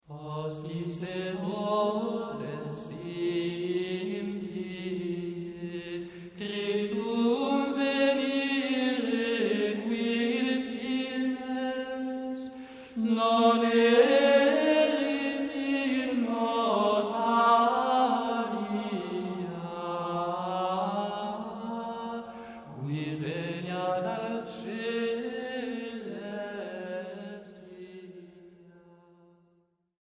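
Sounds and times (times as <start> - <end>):
Latin hymn singing: 0.0 - 29.1.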